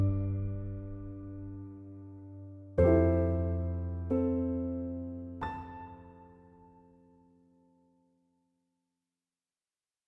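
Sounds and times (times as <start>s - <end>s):
piano instrumental: 0.0s - 8.0s.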